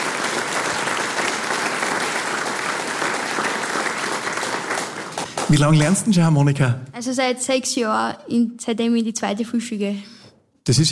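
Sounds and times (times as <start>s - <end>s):
audience applause: 0.0s - 6.3s
speech: 5.5s - 10.9s.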